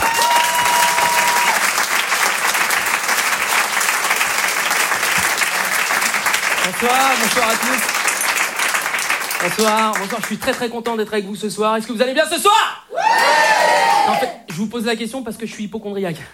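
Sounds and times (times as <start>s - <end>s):
shouts and whistles: 0.0s - 1.6s
large audience applauding loudly: 0.0s - 10.7s
speech: 6.8s - 8.0s, 9.4s - 16.3s.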